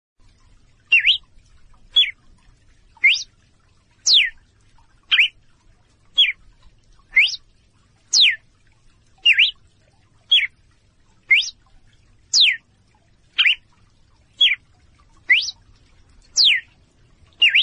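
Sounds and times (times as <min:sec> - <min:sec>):
female red-cowled cardinal calling in clear short whistles: 0:00.9 - 0:01.2, 0:03.0 - 0:03.3, 0:05.1 - 0:05.3, 0:07.1 - 0:07.4, 0:08.2 - 0:08.4, 0:09.3 - 0:09.6, 0:11.3 - 0:11.5, 0:12.4 - 0:12.6, 0:13.4 - 0:13.6, 0:14.4 - 0:14.6, 0:15.3 - 0:15.6, 0:16.4 - 0:16.6, 0:17.4 - 0:17.6.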